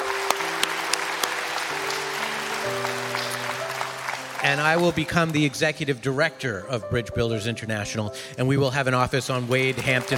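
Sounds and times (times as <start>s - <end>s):
church audience applause: 0.0s - 5.6s, 9.1s - 10.1s
speech: 4.5s - 10.1s.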